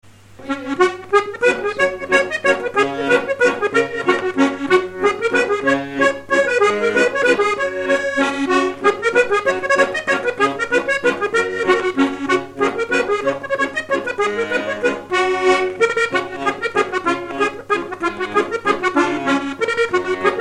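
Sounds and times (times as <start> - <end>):
mazurka: 0.4 - 20.3.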